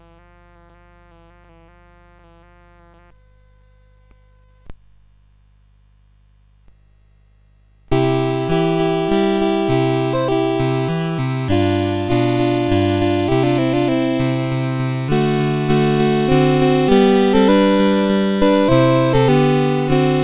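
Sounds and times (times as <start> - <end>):
CSG 8580 sound chip: 7.9 - 20.2.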